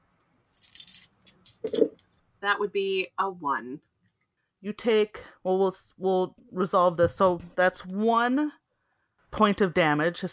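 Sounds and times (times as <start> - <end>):
four dice being rolled: 0.5 - 1.9
speech: 2.4 - 3.9, 4.6 - 8.6, 9.3 - 10.3.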